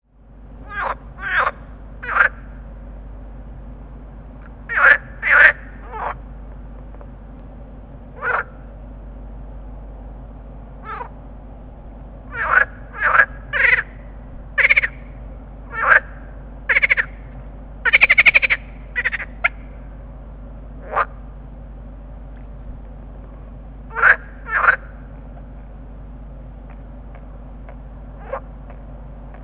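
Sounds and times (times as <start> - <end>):
low hum: 0.0 - 29.4
water frogs croaking: 0.6 - 2.6, 4.4 - 6.2, 8.1 - 8.7, 10.8 - 11.2, 12.3 - 19.9, 20.7 - 21.3, 23.8 - 25.1, 27.1 - 28.8.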